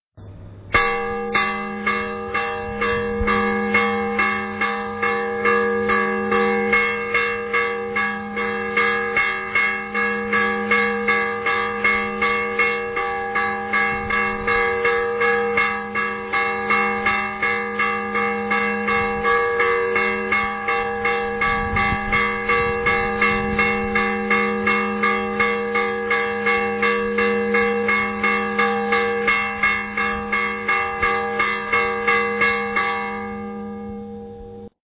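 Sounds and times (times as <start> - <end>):
bell: 0.3 - 34.8.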